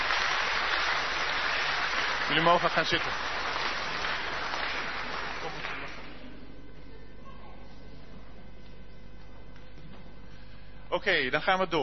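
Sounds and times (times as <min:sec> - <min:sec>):
audience applause: 0:00.0 - 0:06.3
speech: 0:02.3 - 0:03.4, 0:11.0 - 0:11.8.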